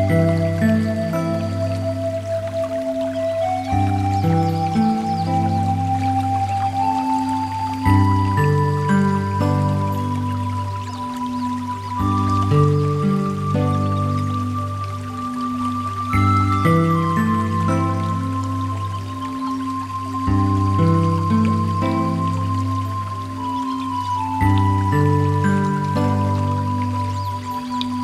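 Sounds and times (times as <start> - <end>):
melody: 0.0 - 28.0
water sounds: 0.0 - 28.0.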